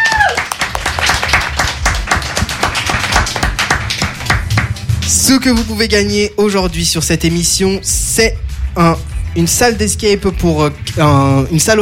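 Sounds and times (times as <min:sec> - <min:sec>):
audience applause: 0:00.0 - 0:05.3
speech: 0:05.3 - 0:11.8.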